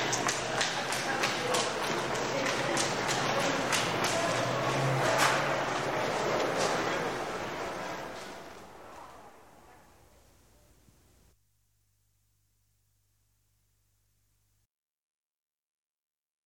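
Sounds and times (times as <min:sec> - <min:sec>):
crowd at a train station: 0:00.0 - 0:11.0.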